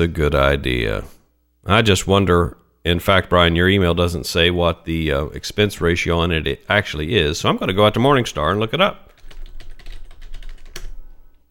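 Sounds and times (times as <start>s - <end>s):
speech: 0.0s - 9.0s
typing a fund ticker on a computer keyboard: 9.0s - 11.2s.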